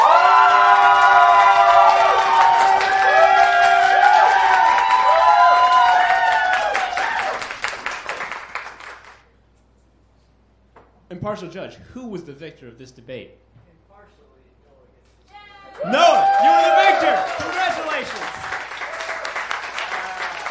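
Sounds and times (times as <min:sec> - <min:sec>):
audience cheering and whooping: 0:00.0 - 0:07.6, 0:15.5 - 0:20.4
audience applause: 0:00.0 - 0:09.2, 0:15.8 - 0:20.4
speech: 0:11.3 - 0:13.5.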